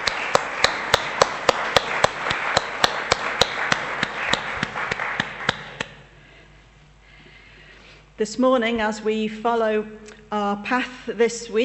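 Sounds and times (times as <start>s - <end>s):
audience applause: 0.0s - 6.0s
speech: 8.2s - 11.6s.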